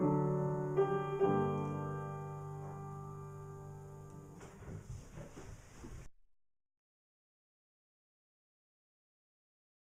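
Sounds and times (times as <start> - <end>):
old French melody on piano: 0.0 - 4.7.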